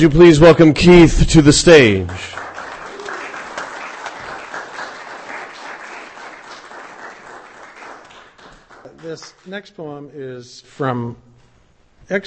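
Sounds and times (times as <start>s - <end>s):
speech: 0.0s - 2.4s, 9.1s - 11.3s, 12.1s - 12.2s
audience applause at a poetry reading: 2.0s - 9.5s.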